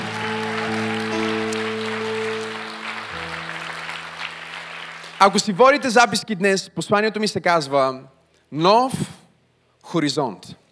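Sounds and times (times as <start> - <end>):
audience applauding: 0.0 - 6.1
speech: 5.2 - 9.2, 9.9 - 10.6.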